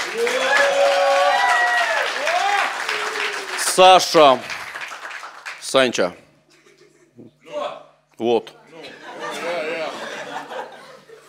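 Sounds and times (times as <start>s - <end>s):
audience applause: 0.0s - 5.7s
speech: 0.1s - 0.4s, 3.8s - 4.5s, 5.7s - 6.2s, 8.2s - 8.6s
laughter: 6.5s - 7.3s, 8.6s - 11.2s.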